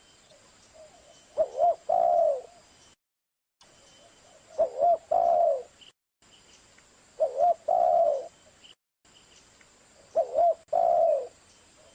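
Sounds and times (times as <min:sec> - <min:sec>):
spotted dove cooing: 0:00.8 - 0:02.6, 0:04.2 - 0:05.7, 0:07.2 - 0:08.3, 0:10.1 - 0:11.9.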